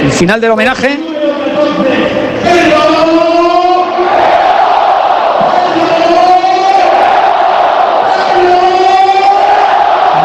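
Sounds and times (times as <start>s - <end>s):
speech: 0.2s - 3.4s
stadium crowd chanting: 3.9s - 5.9s, 6.7s - 8.4s, 9.1s - 10.2s.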